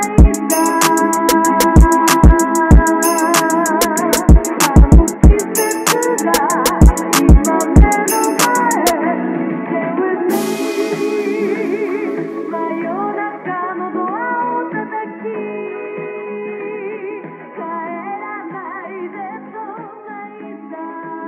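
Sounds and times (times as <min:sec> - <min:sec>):
soft bass-boosted remix: 0:00.0 - 0:09.0, 0:10.3 - 0:14.1.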